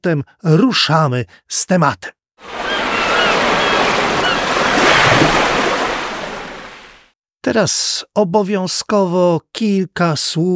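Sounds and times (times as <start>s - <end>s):
speech: 0.0s - 2.8s, 7.5s - 10.5s
ocean waves roar of surf: 2.4s - 7.2s.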